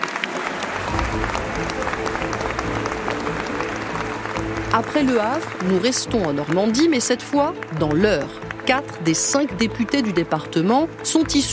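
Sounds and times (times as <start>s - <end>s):
crowd applause: 0.0s - 11.5s
speech: 4.7s - 11.5s.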